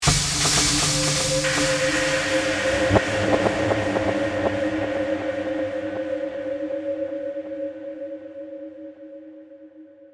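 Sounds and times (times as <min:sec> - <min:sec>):
eerie horror percussion accent: 0:00.0 - 0:07.8.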